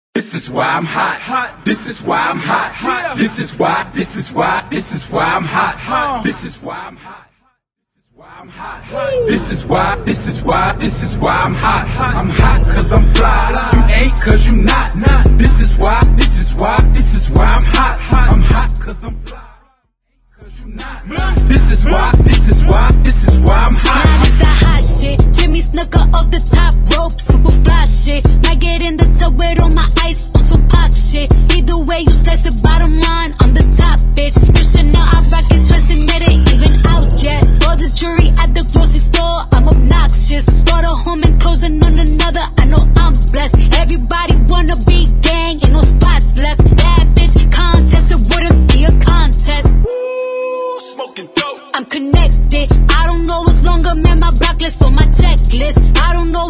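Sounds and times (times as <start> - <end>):
a cappella singing: 0.2 - 7.5, 8.1 - 56.4.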